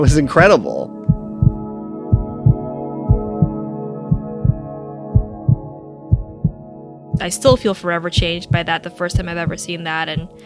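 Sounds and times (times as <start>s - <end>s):
speech: 0.0s - 0.9s, 7.2s - 10.4s
fetal heartbeat on ultrasound: 2.2s - 6.6s, 7.2s - 10.4s.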